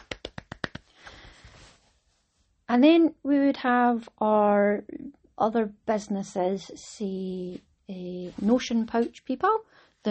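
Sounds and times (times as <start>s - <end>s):
person clapping: 0.0s - 1.2s
speech: 2.7s - 10.0s.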